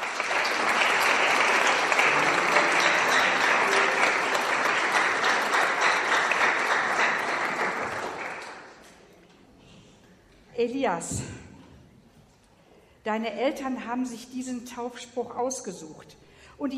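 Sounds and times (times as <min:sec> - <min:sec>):
audience applause: 0:00.0 - 0:08.8
speech: 0:10.7 - 0:11.4, 0:13.0 - 0:16.7.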